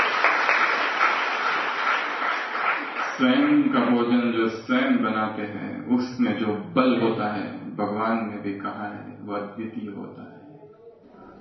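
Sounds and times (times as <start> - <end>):
audience applause: 0.0 - 4.0
speech: 3.2 - 10.3.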